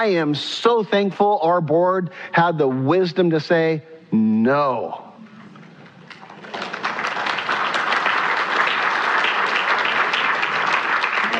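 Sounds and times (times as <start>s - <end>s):
speech: 0.0s - 5.0s
crowd applauding: 6.0s - 11.3s.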